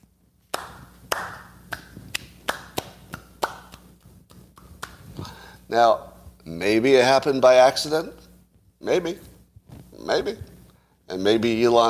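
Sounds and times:
slow hand clapping: 0.4s - 5.3s
speech: 5.7s - 8.2s, 8.8s - 9.3s, 10.1s - 10.5s, 11.1s - 11.8s.

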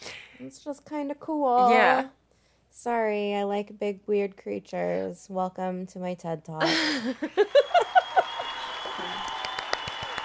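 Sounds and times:
speech: 0.4s - 2.2s, 2.8s - 7.8s
laughter: 6.6s - 9.1s
soundboard applause effect: 7.5s - 10.2s.

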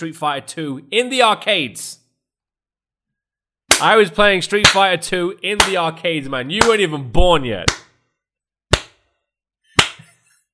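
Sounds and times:
speech: 0.0s - 2.0s, 3.8s - 7.8s
slow hand claps: 9.8s - 10.1s.

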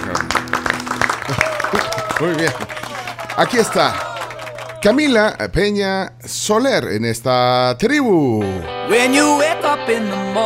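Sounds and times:
many hands clapping: 0.0s - 5.0s
laughter: 1.2s - 4.8s
speech: 1.3s - 2.7s, 3.4s - 4.1s, 4.8s - 10.4s.

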